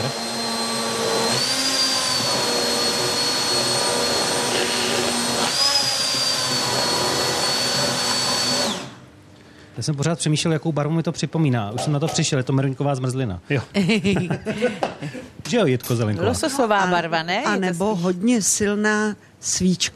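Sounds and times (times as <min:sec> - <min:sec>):
stick blender: 0:00.0 - 0:09.0
speech: 0:09.8 - 0:19.9
laughter: 0:13.8 - 0:15.4.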